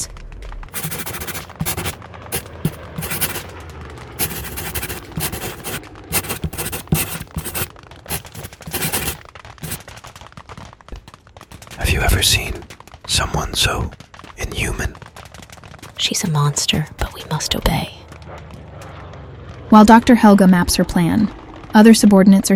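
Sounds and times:
pen scratching on paper: 0:00.8 - 0:03.5, 0:04.2 - 0:09.8
speech: 0:12.1 - 0:12.6, 0:13.2 - 0:15.0, 0:16.0 - 0:18.0, 0:19.7 - 0:22.5.

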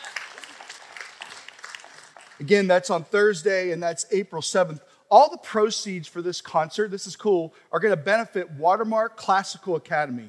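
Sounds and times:
audience applause: 0:00.0 - 0:02.5
speech: 0:02.4 - 0:10.2.

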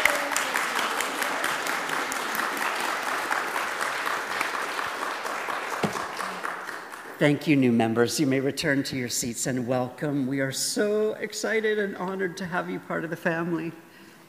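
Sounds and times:
church congregation clapping: 0:00.0 - 0:08.1
speech: 0:07.2 - 0:13.8.

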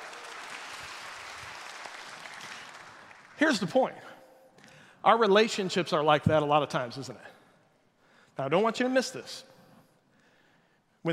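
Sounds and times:
audience applause: 0:00.0 - 0:03.4
speech: 0:03.4 - 0:04.1, 0:05.0 - 0:07.4, 0:08.4 - 0:09.5.

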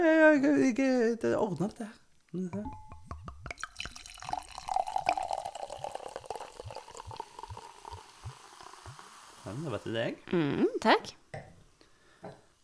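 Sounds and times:
speech: 0:00.0 - 0:02.8, 0:09.5 - 0:11.4, 0:12.2 - 0:12.4
liquid poured into a glass: 0:02.6 - 0:10.0.

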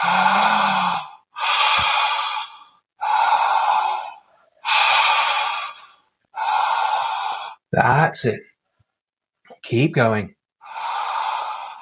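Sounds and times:
deep full-body breathing through a wide-open mouth: 0:00.0 - 0:07.7, 0:10.6 - 0:11.7
speech: 0:07.8 - 0:08.5, 0:09.7 - 0:10.4.

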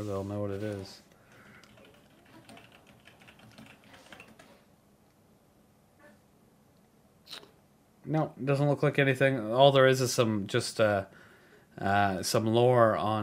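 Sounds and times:
speech: 0:00.0 - 0:01.1, 0:08.0 - 0:11.2, 0:11.8 - 0:13.2
quiet typing of a web search on a computer keyboard: 0:01.6 - 0:04.6.

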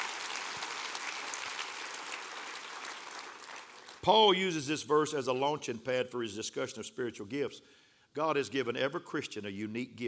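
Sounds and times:
audience clapping hands: 0:00.0 - 0:04.1
speech: 0:04.0 - 0:10.0.

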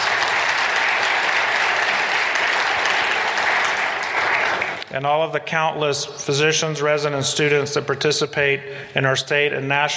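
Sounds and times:
audience applause: 0:00.0 - 0:04.8
speech: 0:04.9 - 0:09.9.

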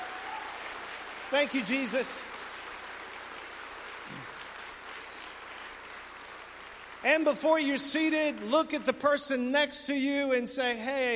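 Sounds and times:
audience applause: 0:00.0 - 0:07.3
speech: 0:01.3 - 0:02.4, 0:07.0 - 0:11.1.

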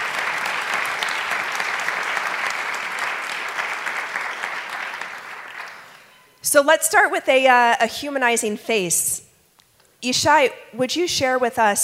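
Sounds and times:
audience applause: 0:00.0 - 0:06.1
speech: 0:06.5 - 0:09.2, 0:10.0 - 0:11.8.

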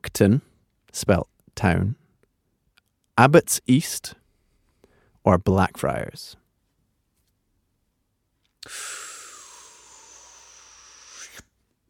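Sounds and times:
speech: 0:00.2 - 0:02.0, 0:03.2 - 0:04.2, 0:05.2 - 0:06.4, 0:08.6 - 0:09.0
hissing intake of breath during a quiz game: 0:08.6 - 0:11.6.

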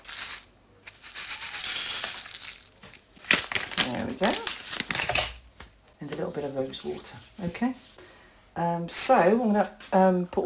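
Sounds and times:
caraway seeds being weighed out: 0:00.0 - 0:05.3
speech: 0:04.2 - 0:04.6, 0:06.0 - 0:08.0, 0:08.6 - 0:10.4.

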